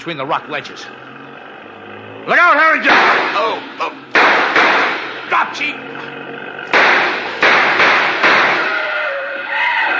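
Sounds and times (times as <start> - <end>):
speech: 0.0 - 1.1, 1.9 - 4.3, 5.3 - 6.0
rough roar: 0.0 - 9.9
Jeep crashing into a rock ledge: 2.8 - 6.0, 6.6 - 9.0.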